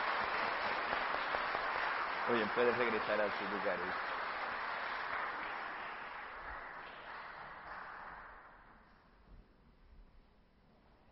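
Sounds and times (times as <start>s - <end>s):
audience applause: 0.0s - 8.6s
speech: 2.3s - 4.1s.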